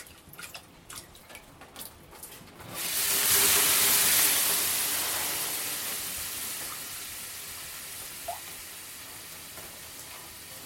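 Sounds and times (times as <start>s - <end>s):
sauna steam hissing: 2.8s - 10.6s.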